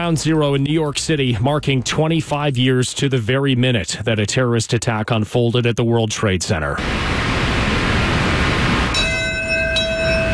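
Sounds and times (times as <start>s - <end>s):
speech: 0.0s - 7.3s
steady hissing noise: 6.8s - 9.2s
memorial bell tolling: 8.9s - 10.3s.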